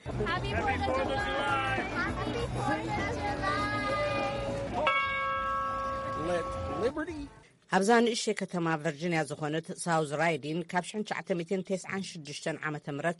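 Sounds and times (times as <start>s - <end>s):
chatter of a gathered crowd: 0.0s - 7.4s
speech: 0.2s - 3.6s, 6.2s - 13.1s
children's voices: 1.7s - 4.8s
bell rung for Independence Day in South Riding, Virginia: 4.8s - 7.0s.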